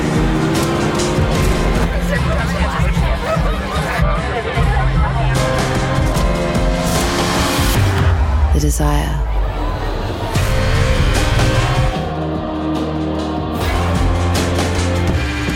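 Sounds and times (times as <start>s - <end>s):
car engine revving: 0.0s - 8.5s, 9.3s - 15.5s
laughter: 1.8s - 5.4s
speech: 8.8s - 9.3s.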